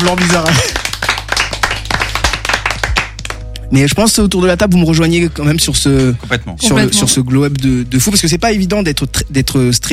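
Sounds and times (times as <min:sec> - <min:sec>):
small group around a table clapping for a guest: 0:00.0 - 0:03.7
speech: 0:00.1 - 0:00.7, 0:03.7 - 0:09.9.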